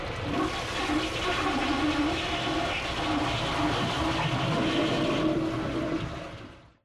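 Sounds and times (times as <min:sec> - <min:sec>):
toilet: 0:00.1 - 0:06.3.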